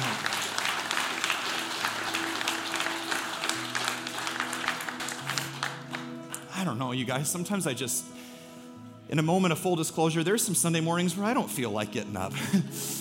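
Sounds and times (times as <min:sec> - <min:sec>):
audience clapping: 0:00.0 - 0:06.4
speech: 0:06.6 - 0:08.2, 0:09.1 - 0:13.0.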